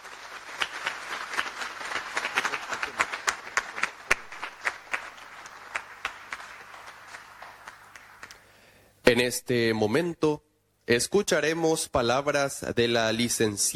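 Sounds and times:
crowd applause: 0:00.0 - 0:08.5
speech: 0:09.1 - 0:13.7.

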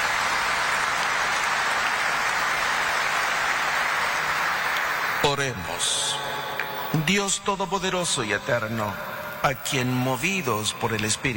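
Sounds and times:
audience applause: 0:00.0 - 0:07.0
speech: 0:05.4 - 0:11.3.

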